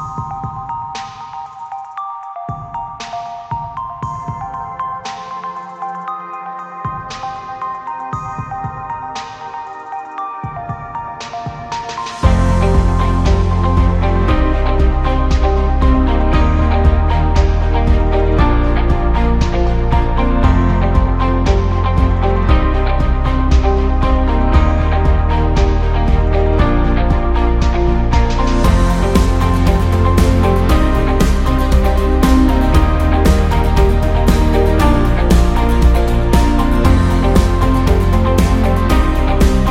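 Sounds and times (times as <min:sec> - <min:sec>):
motivational rock music: 0:12.1 - 0:39.7.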